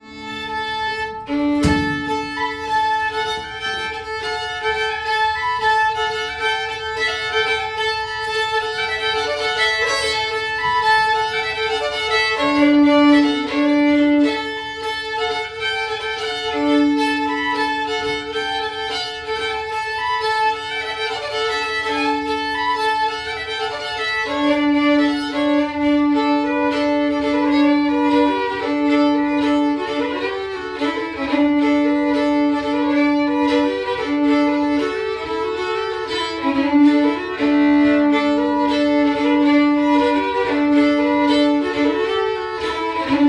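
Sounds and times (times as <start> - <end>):
Varmland polska folk dance tune: 0.1 - 43.2.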